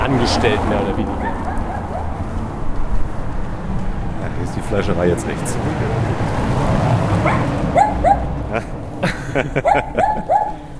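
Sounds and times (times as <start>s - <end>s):
outdoor rumble: 0.0s - 10.7s
speech: 0.1s - 1.5s, 4.5s - 7.8s, 9.3s - 10.4s
small dog barking behind a gate: 1.2s - 2.2s, 7.2s - 8.3s, 9.6s - 10.6s
laughter: 8.4s - 10.7s.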